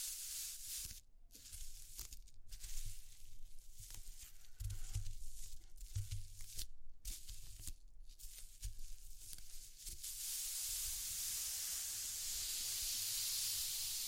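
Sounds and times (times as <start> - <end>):
bright crackly scratching and rustling of textures: 0.6 - 10.0
steady even hiss: 10.0 - 14.0.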